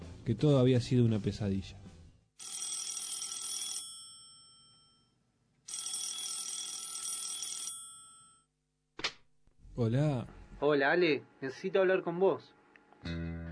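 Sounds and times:
speech: 0.2s - 1.8s, 9.8s - 13.3s
telephone ringing: 2.4s - 8.5s.

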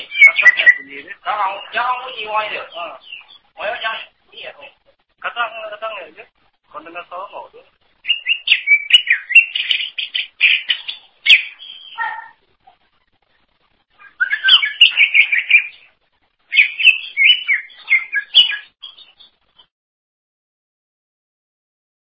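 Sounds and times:
greater green leafbird song: 0.0s - 4.7s, 8.0s - 12.4s, 13.9s - 19.7s
speech: 0.4s - 7.8s.

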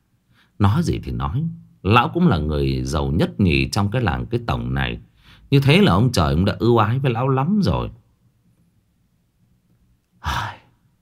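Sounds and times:
speech: 0.6s - 8.0s
old man sniffing air through the nose: 10.2s - 10.8s.

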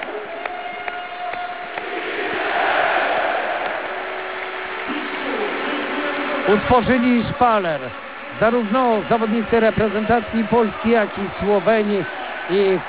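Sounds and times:
stadium crowd clapping and cheering: 0.0s - 12.8s
speech: 6.5s - 12.8s.

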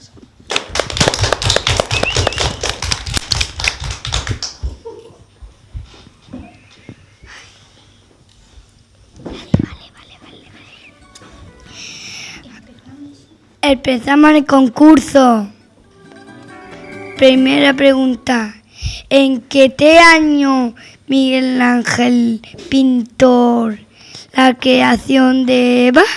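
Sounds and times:
loud applause: 0.5s - 4.5s
speech: 13.7s - 15.5s, 17.2s - 23.8s, 24.4s - 26.1s.

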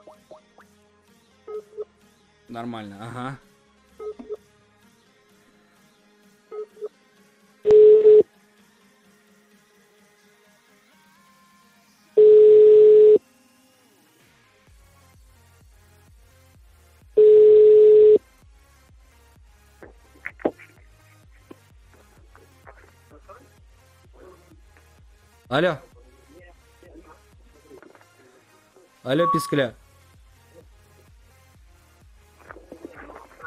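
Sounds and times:
speech: 2.5s - 3.5s, 25.5s - 25.9s, 29.1s - 29.8s
long steady telephone tones: 7.7s - 8.2s, 12.2s - 13.2s, 17.2s - 18.2s
telephone keypad beeps: 29.2s - 29.7s.

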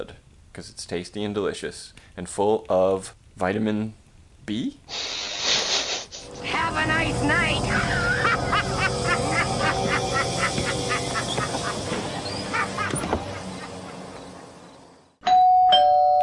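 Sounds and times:
speech: 0.0s - 5.2s, 6.7s - 8.0s
laughter: 7.7s - 14.6s
loud two-tone doorbell chime: 15.2s - 16.2s.

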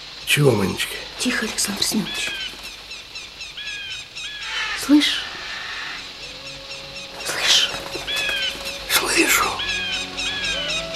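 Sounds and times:
speech: 0.3s - 2.5s, 4.8s - 5.3s
chicks pecking inside eggshells: 0.3s - 3.1s, 7.0s - 10.0s.

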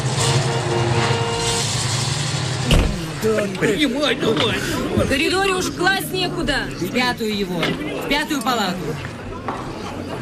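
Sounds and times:
truck with frozen canvas tarpaulin driving away through dark night streets: 0.0s - 6.9s
broad road noise: 0.0s - 10.2s
speech: 3.2s - 9.2s.

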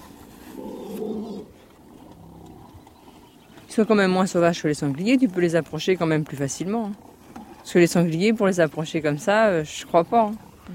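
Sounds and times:
farm animals grunting by the fence: 0.0s - 3.4s
speech: 3.8s - 7.1s, 7.7s - 10.7s.

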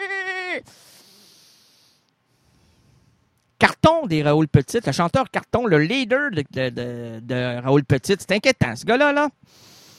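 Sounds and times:
frightened woman's strained cracking scream resembling a sheep's bleat: 0.0s - 0.6s
faint hiss: 0.6s - 3.5s, 9.4s - 9.9s
speech: 4.0s - 9.8s.

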